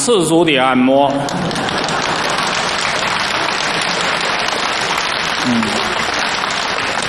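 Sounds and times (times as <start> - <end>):
speech: 0.0 - 1.8, 5.4 - 5.8
laughter: 1.1 - 7.0
warm audience applause: 1.1 - 7.0.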